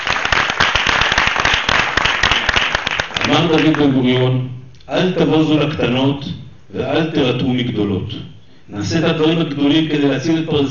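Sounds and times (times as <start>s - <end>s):
audience applause: 0.0s - 3.8s
speech: 3.3s - 10.6s.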